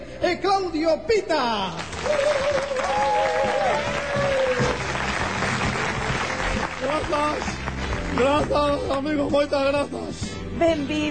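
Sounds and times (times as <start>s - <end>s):
speech: 0.3s - 3.5s, 6.8s - 7.6s, 8.2s - 11.0s
audience applause: 1.8s - 8.8s.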